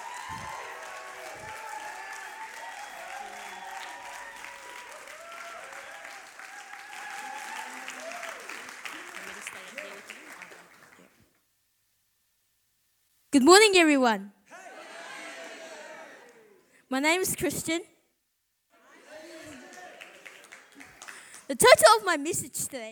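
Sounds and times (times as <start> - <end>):
shouts and whoops: 0.0 - 8.6, 14.5 - 16.6, 18.9 - 20.2
church congregation applause welcoming a speaker: 0.0 - 11.2, 14.5 - 16.6, 18.8 - 21.6
speech: 13.4 - 14.3, 16.9 - 17.9, 21.5 - 22.8.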